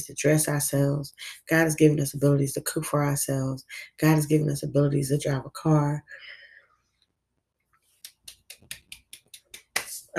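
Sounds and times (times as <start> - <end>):
speech: 0.0 - 6.4
small hand clap: 8.0 - 10.0.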